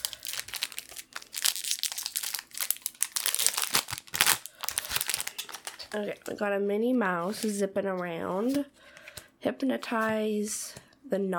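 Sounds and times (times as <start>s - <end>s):
foil trading card pack wrappers torn open and handled: 0.0s - 6.3s
speech: 5.9s - 11.3s.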